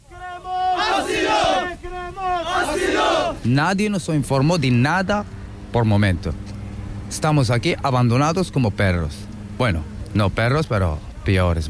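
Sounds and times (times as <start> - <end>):
crowd shouting demands for asylum: 0.0 - 3.5
speech: 3.4 - 6.5, 7.1 - 11.6.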